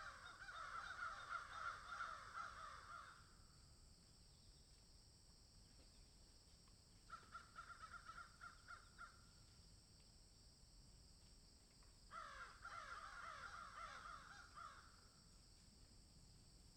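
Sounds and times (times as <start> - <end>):
crow giving hoarse downslurred caws: 0.0 - 3.3, 7.1 - 9.2, 12.1 - 15.0.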